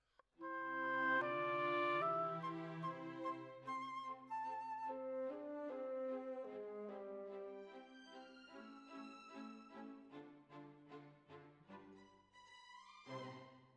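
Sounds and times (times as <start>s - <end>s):
oboe: 0.4s - 7.8s.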